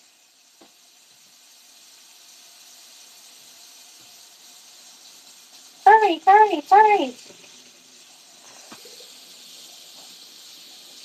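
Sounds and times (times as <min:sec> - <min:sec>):
water running into kitchen sink: 0:04.0 - 0:11.0
speech: 0:06.0 - 0:07.4.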